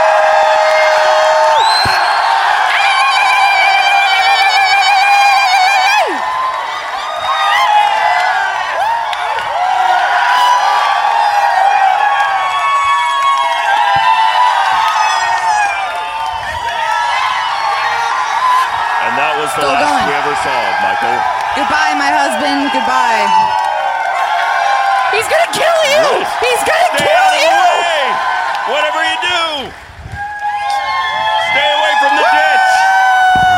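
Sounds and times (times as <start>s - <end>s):
crowd cheering loudly: 0.0s - 33.5s.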